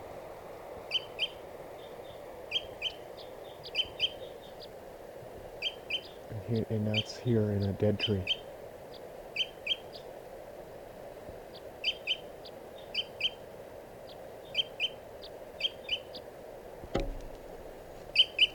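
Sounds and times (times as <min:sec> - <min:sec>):
wild bird calling: 0:00.9 - 0:04.9, 0:05.5 - 0:10.2, 0:11.5 - 0:13.4, 0:14.0 - 0:16.3, 0:17.0 - 0:18.5
speech: 0:06.5 - 0:08.4.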